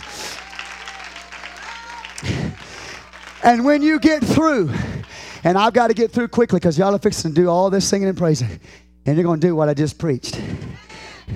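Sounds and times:
crowd voices: 0:00.0 - 0:05.0
audience clapping: 0:00.0 - 0:06.6
speech: 0:03.4 - 0:10.6.

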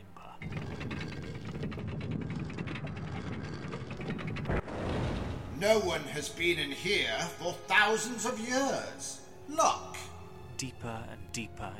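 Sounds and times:
heavy door of a dark chamber opening: 0:00.4 - 0:06.0
speech: 0:05.6 - 0:09.8, 0:10.6 - 0:11.7.

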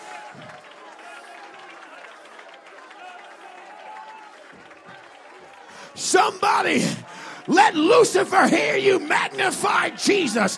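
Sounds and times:
crowd audience clapping: 0:00.0 - 0:10.5
speech: 0:06.0 - 0:10.5.

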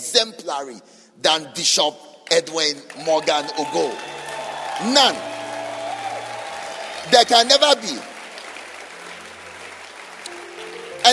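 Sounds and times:
speech: 0:00.1 - 0:04.2, 0:04.8 - 0:05.3, 0:07.0 - 0:08.1
audience clapping: 0:02.2 - 0:11.1.

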